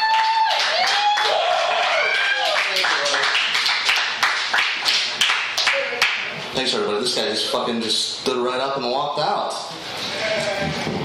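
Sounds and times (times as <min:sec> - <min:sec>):
audience applause: 0:00.0 - 0:06.3
speech: 0:06.6 - 0:11.0.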